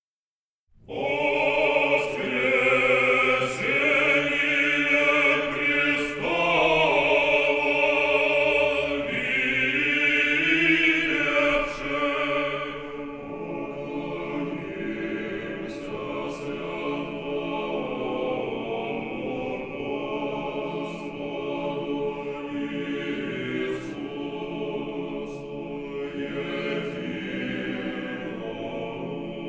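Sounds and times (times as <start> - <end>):
monastery choir singing: 0.8 - 29.4.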